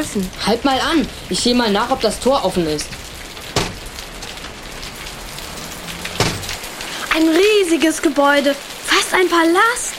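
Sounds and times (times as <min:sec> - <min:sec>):
speech: 0:00.0 - 0:03.0, 0:07.2 - 0:09.9
rain during a thunderstorm: 0:00.0 - 0:09.9
splashing hits: 0:01.8 - 0:07.3.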